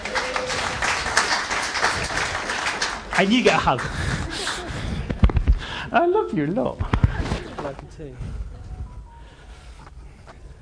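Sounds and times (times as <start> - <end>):
audience applause: 0.0 - 4.9
speech: 3.2 - 4.2, 5.9 - 7.0, 7.6 - 8.3.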